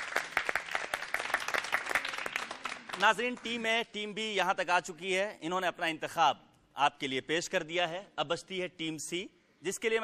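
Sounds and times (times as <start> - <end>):
audience applause welcoming a team at a team competition event: 0.0 - 3.4
speech: 3.0 - 10.0.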